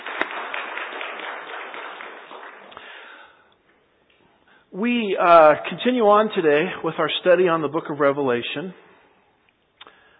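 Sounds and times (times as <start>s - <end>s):
round of applause: 0.0s - 3.4s
speech: 4.8s - 8.8s.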